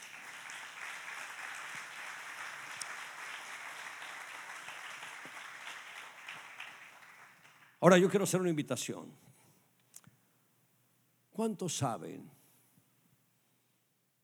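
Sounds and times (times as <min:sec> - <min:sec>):
sustained audience applause: 0:00.0 - 0:07.8
speech: 0:07.8 - 0:09.3, 0:11.4 - 0:12.4.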